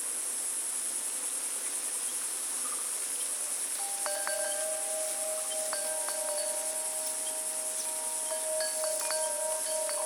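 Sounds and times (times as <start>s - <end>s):
cricket chorus trilling: 0.0s - 10.0s
bright chime-like tones: 3.8s - 10.0s
soft bird notes: 3.8s - 10.0s.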